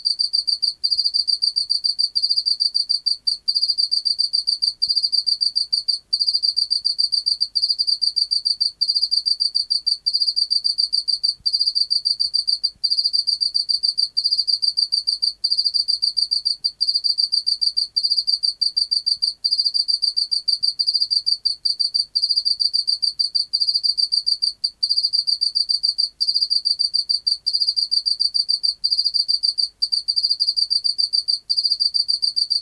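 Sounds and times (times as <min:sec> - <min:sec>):
Teleogryllus oceanicus chirping: 0:00.0 - 0:32.5.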